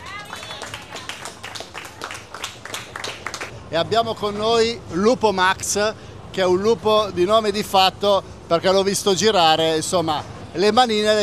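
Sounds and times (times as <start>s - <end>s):
applause: 0.0s - 3.5s
speech: 3.7s - 11.2s.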